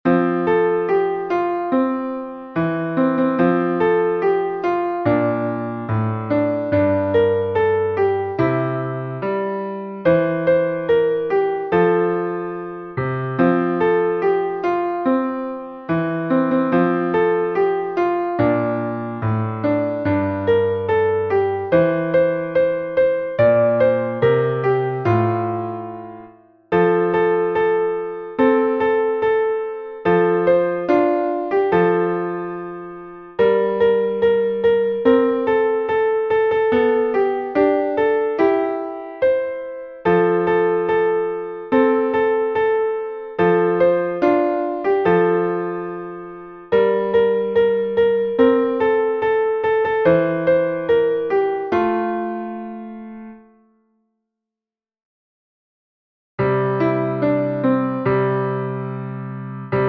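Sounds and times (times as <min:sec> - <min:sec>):
Christmas song: 0:00.0 - 0:53.7, 0:56.4 - 0:59.8.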